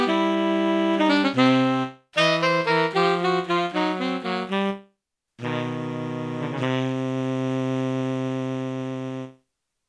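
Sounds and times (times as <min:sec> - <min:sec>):
tenor saxophone duet playing standards: 0:00.0 - 0:09.4.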